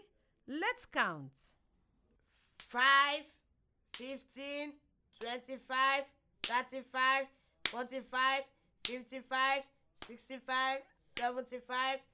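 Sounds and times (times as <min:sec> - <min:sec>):
speech: 0:00.5 - 0:01.6, 0:02.6 - 0:03.4, 0:04.0 - 0:12.1
hand claps: 0:02.5 - 0:02.9, 0:03.9 - 0:04.3, 0:05.2 - 0:05.5, 0:06.4 - 0:06.8, 0:07.6 - 0:08.1, 0:08.8 - 0:09.2, 0:10.0 - 0:10.4, 0:11.1 - 0:11.4
person chanting: 0:04.0 - 0:12.1.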